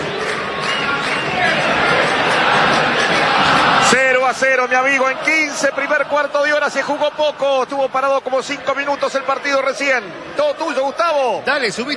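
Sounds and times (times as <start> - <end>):
Racing fans singing in a stadium during a football match: 0.0 - 9.1
speech: 4.3 - 11.9.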